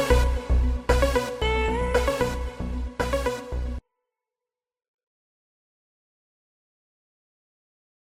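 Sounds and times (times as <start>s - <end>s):
amapiano remix music: 0.0s - 3.8s.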